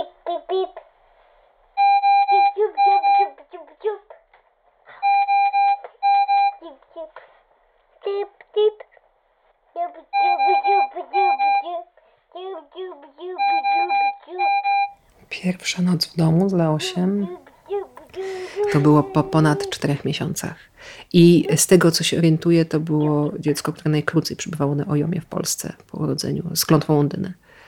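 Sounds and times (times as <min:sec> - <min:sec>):
young child babbling and vocalizing: 0:00.0 - 0:00.8, 0:02.3 - 0:04.2, 0:06.6 - 0:07.2, 0:08.0 - 0:08.9, 0:09.8 - 0:14.6, 0:16.8 - 0:20.0
home breathing machine beeping: 0:01.8 - 0:03.4, 0:04.9 - 0:06.6, 0:10.2 - 0:11.7, 0:13.4 - 0:15.0, 0:18.1 - 0:18.9
speech: 0:15.5 - 0:17.4, 0:18.7 - 0:27.6.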